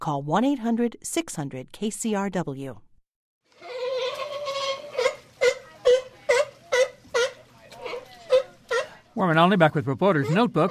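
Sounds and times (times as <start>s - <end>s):
speech: 0.0s - 2.8s, 9.2s - 10.6s
California sea lions vocalizing: 3.6s - 9.0s, 10.1s - 10.6s.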